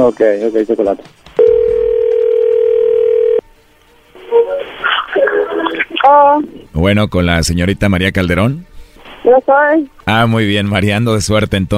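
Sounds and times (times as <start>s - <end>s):
speech: 0.0s - 1.2s, 5.6s - 11.7s
telephone dial tone: 1.4s - 3.4s.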